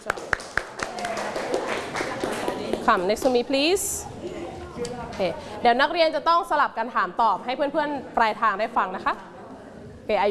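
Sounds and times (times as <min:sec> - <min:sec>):
hand claps in a classroom welcoming student volunteers: 0:00.0 - 0:03.4
speech: 0:02.9 - 0:09.3, 0:10.1 - 0:10.2.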